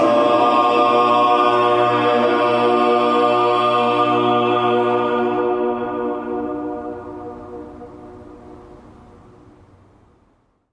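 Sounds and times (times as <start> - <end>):
vocal ensemble singing a Requiem Kyrie: 0.0 - 7.8.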